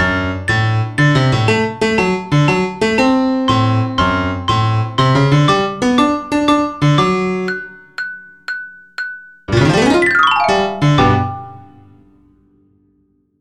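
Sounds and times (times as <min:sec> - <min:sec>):
piano: 0:00.0 - 0:12.2
xylophone: 0:00.5 - 0:01.8, 0:07.5 - 0:11.9.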